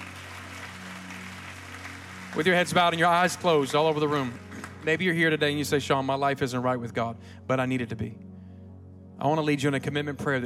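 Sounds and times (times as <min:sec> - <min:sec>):
audience clapping hands: 0:00.0 - 0:05.2
speech: 0:02.3 - 0:08.3, 0:09.2 - 0:10.4.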